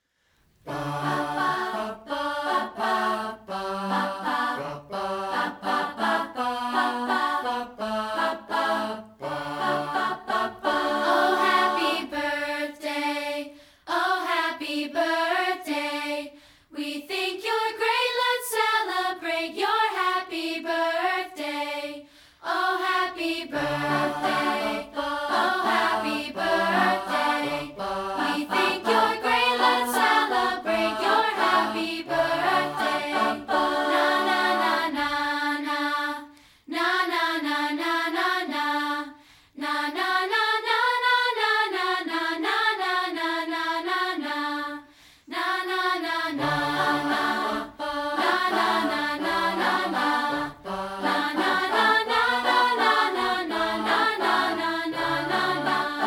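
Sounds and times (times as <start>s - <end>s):
people singing a cappella: 0.6s - 56.0s.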